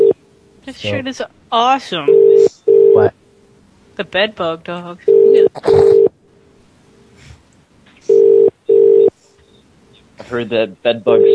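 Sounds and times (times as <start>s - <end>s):
speech: 0.7s - 3.2s, 4.0s - 6.0s, 10.3s - 11.3s
phone ringback tone over an unanswered line: 2.1s - 3.1s, 5.1s - 6.1s, 8.1s - 9.1s.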